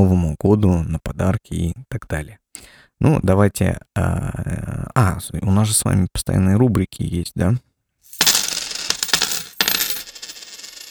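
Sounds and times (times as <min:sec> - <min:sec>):
speech: 0:00.0 - 0:07.7
coins jingling: 0:08.1 - 0:10.8.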